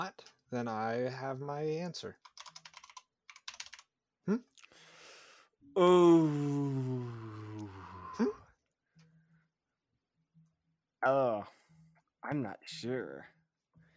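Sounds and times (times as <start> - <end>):
speech: 0.0 - 2.4, 4.2 - 4.5, 5.8 - 7.3, 11.0 - 11.5, 12.2 - 13.3
computer keyboard typing: 2.2 - 3.8
long drawn-out vocal sound: 5.8 - 8.4.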